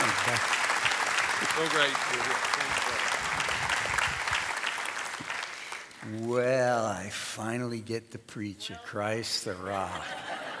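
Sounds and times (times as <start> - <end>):
laughter: 0.0 - 0.5, 1.4 - 3.1, 8.7 - 10.5
church audience applauding to welcome a pastor: 0.0 - 6.3
speech: 1.6 - 3.6, 6.1 - 10.4.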